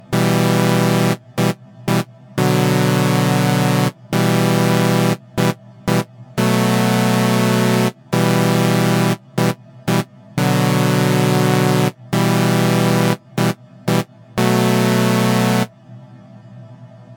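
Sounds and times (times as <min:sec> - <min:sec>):
keys with smart reverb freeze: 0:00.0 - 0:15.7.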